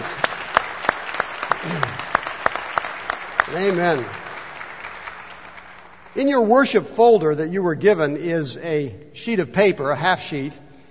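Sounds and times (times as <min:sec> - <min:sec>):
audience applause: 0:00.0 - 0:06.1
speech: 0:03.5 - 0:04.2, 0:06.1 - 0:10.6.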